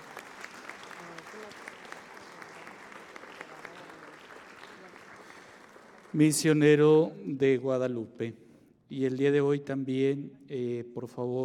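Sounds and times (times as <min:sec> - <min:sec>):
audience applause: 0:00.0 - 0:06.6
speech: 0:06.2 - 0:11.4.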